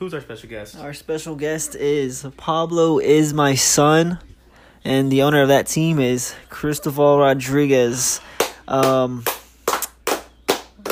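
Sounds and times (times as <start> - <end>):
speech: 0.0 - 9.4
people clapping: 8.3 - 10.9.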